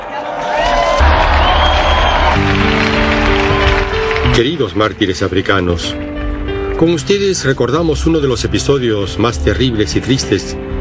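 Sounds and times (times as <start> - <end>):
audience applause: 0.0 - 5.9
speech: 4.4 - 6.1, 6.8 - 10.6.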